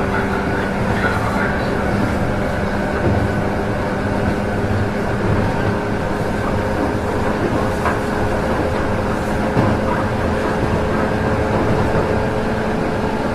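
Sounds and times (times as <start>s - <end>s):
Joban rapid train series 103: 0.0s - 13.3s.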